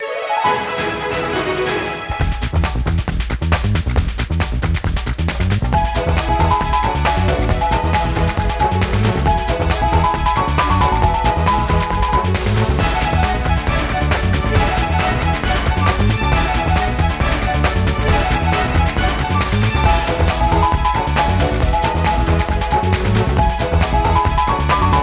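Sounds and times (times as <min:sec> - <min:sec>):
mixed-up scramble music: 0:00.0 - 0:25.0.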